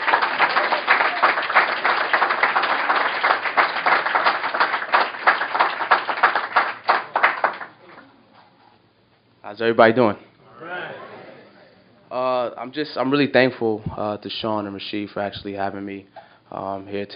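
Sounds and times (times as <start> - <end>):
audience applause: 0.0 - 8.1
speech: 9.5 - 10.3, 12.6 - 17.1.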